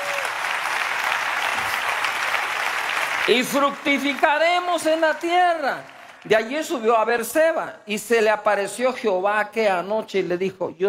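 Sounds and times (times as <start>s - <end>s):
applause: 0.0s - 7.3s
speech: 3.2s - 10.8s.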